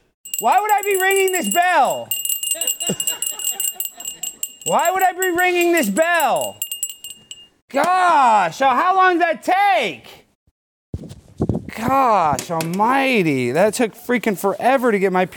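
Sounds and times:
bell ringing: 0.3s - 7.6s
speech: 0.4s - 6.6s, 7.7s - 10.2s, 11.8s - 15.3s.

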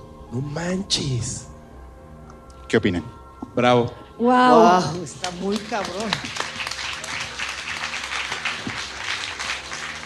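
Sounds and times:
speech: 0.3s - 1.5s, 2.7s - 6.4s
audience applause: 5.2s - 10.0s.

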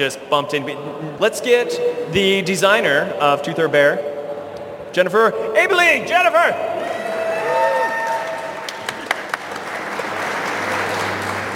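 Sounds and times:
speech: 0.0s - 4.1s, 4.9s - 6.9s
large crowd applauding and cheering: 6.8s - 11.5s.

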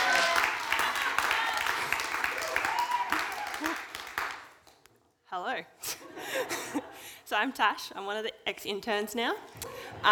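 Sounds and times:
audience applause: 0.0s - 4.7s
speech: 5.5s - 10.0s.

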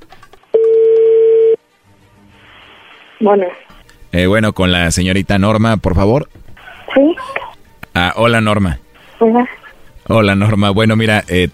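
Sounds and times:
steady telephone tone: 0.5s - 1.6s
speech: 3.2s - 6.4s, 8.2s - 11.5s.

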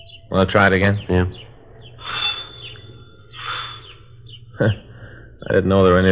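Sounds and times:
doorbell chiming like a chirping bird: 0.0s - 4.5s
speech: 0.3s - 1.5s, 4.6s - 6.0s.

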